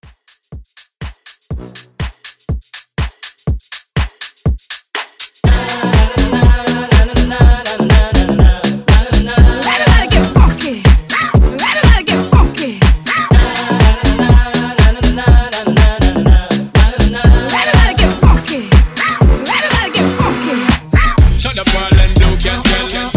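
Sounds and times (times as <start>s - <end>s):
house music: 0.0s - 23.1s.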